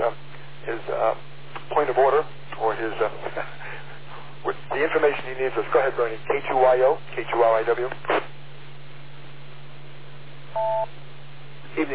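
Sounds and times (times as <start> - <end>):
speech: 0.1 - 3.6, 4.4 - 8.3, 11.8 - 11.9
radio repeater controller beep: 10.6 - 10.9.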